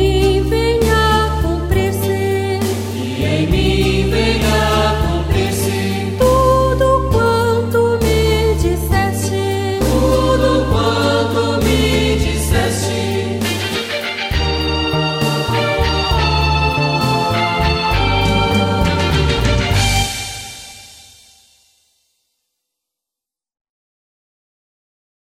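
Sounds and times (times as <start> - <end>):
people singing: 0.1 - 20.2.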